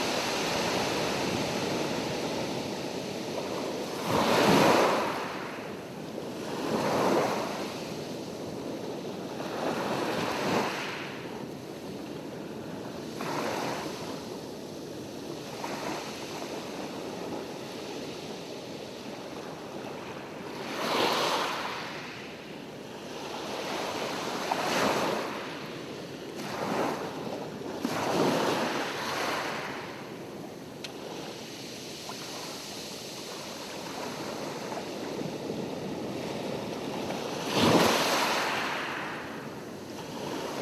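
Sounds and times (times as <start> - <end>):
beach ambience in Fiji: 0.0 - 40.6.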